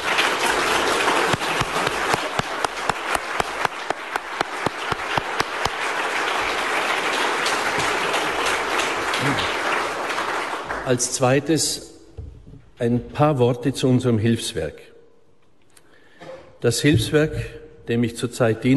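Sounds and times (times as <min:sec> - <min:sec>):
audience applause: 0:00.0 - 0:11.2
speech: 0:10.9 - 0:11.9, 0:12.8 - 0:14.9, 0:16.6 - 0:18.7.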